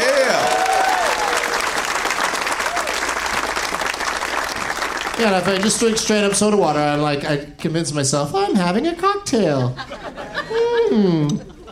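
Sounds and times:
whoops and cheers: 0.0s - 1.7s, 2.6s - 3.1s
crowd clapping: 0.0s - 6.7s
speech: 5.2s - 11.5s
laughter: 9.4s - 11.7s.

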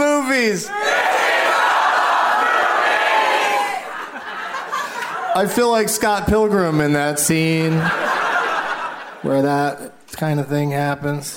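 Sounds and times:
live crowd cheering and yelling: 0.0s - 5.5s
speech: 0.4s - 1.0s, 5.3s - 8.2s, 9.2s - 11.3s
laughter: 1.6s - 5.9s, 7.4s - 9.7s.

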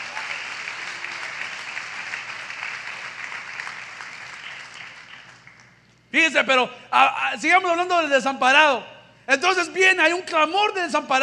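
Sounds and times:
applause: 0.0s - 5.8s
speech: 6.1s - 11.2s.

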